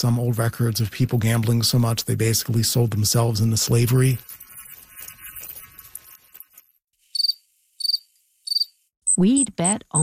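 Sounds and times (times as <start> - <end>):
speech: 0.0 - 4.4, 9.2 - 10.0
crickets chirping: 7.1 - 8.8.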